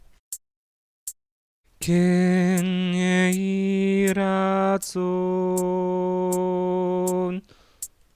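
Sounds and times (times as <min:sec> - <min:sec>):
soprano singing: 0:01.8 - 0:07.4.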